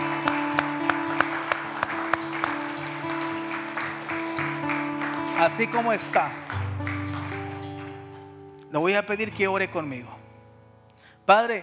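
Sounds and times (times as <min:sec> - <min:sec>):
audience applauding: 0:00.0 - 0:08.5
speech: 0:05.4 - 0:06.6, 0:08.7 - 0:10.2, 0:11.3 - 0:11.6.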